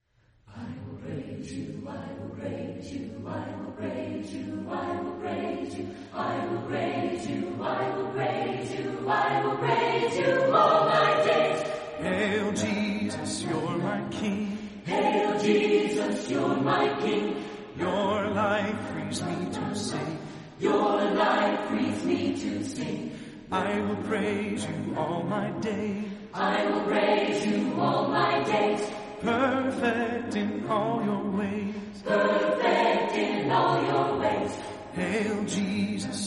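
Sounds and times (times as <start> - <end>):
a cappella chorale voices: 0.4 - 36.2.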